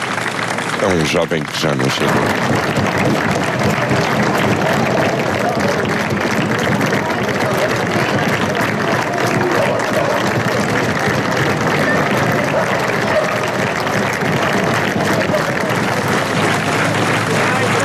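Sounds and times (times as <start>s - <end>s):
applause in a television broadcast: 0.0s - 17.8s
speech: 0.8s - 6.0s.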